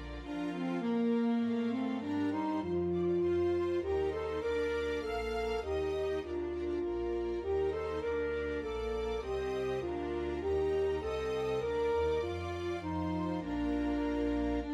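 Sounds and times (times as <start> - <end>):
saxophone melody: 0.2 - 14.7.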